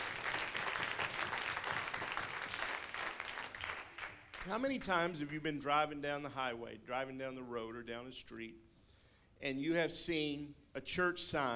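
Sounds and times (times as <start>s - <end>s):
audience clapping: 0.0s - 4.7s
speech: 4.4s - 8.7s, 9.4s - 11.5s.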